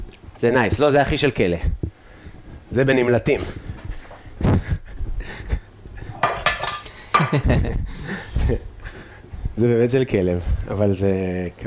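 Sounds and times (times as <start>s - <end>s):
speech: 0.4s - 1.8s, 2.7s - 3.6s, 7.3s - 8.7s, 9.6s - 11.6s
ceramic dishes clinking as a plate is set down: 6.2s - 7.3s.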